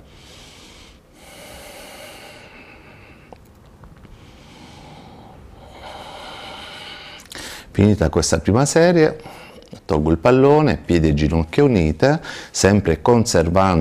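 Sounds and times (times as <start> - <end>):
slow breathing in and out during a lower-back exercise: 0.0 - 7.8, 12.2 - 12.6
speech: 7.8 - 13.7.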